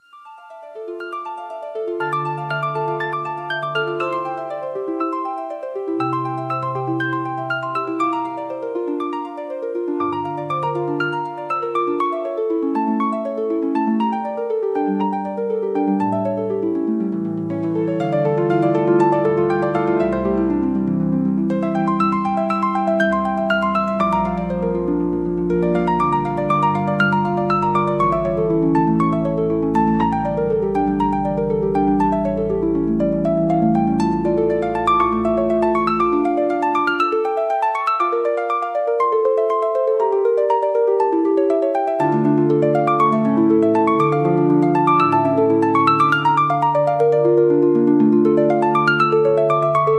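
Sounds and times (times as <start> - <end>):
Celtic harp music: 0.0 - 49.9.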